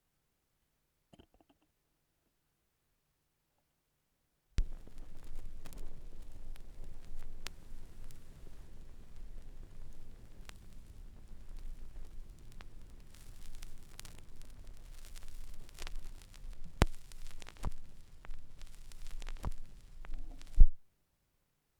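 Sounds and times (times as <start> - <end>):
vinyl record noise: 4.6 - 20.8.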